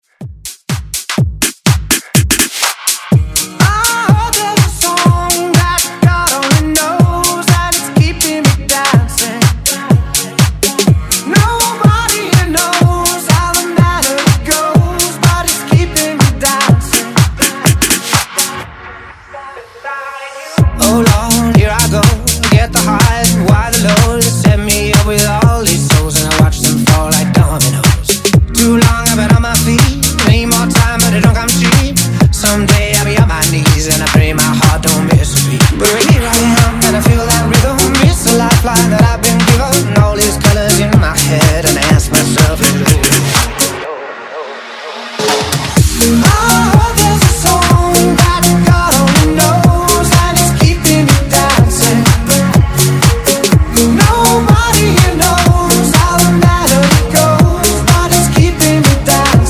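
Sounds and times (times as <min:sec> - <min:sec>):
house music: 0:00.0 - 0:59.4.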